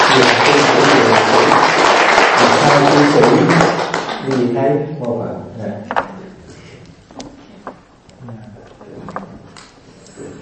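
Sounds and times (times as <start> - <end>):
audience applause at a Buddhist monastery gathering for a musician: 0.0 - 4.5
speech: 0.2 - 0.4, 2.8 - 6.0.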